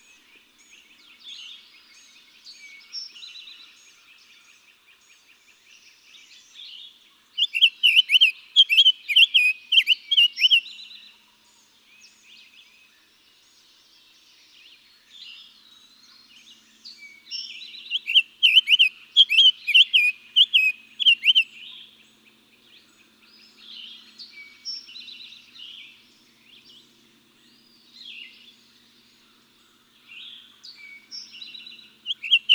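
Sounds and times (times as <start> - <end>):
Summer Tanager: 0.0 - 32.5.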